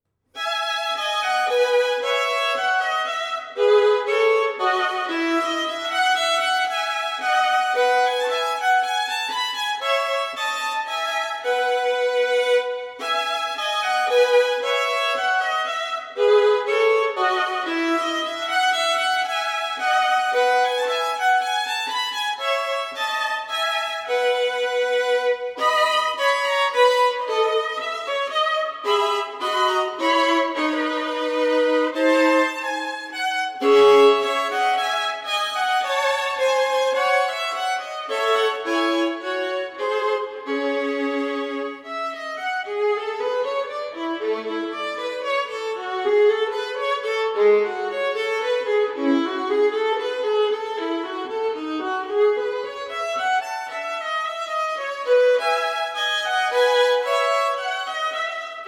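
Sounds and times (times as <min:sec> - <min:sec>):
solo violin playing a minuet in E major: 0:00.0 - 0:58.6.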